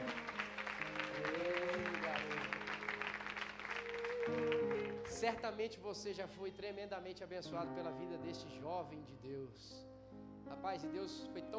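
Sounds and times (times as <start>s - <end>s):
audience applauding: 0.0s - 5.6s
speech: 5.2s - 9.9s, 10.5s - 11.5s.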